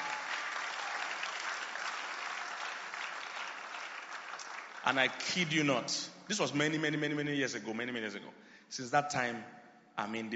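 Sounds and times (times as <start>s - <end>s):
audience clapping: 0.0s - 5.6s
speech: 4.8s - 10.3s.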